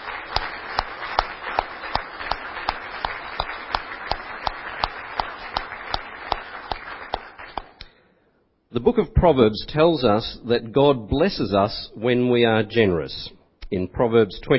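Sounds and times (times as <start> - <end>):
audience applause: 0.0 - 7.8
speech: 8.7 - 14.5.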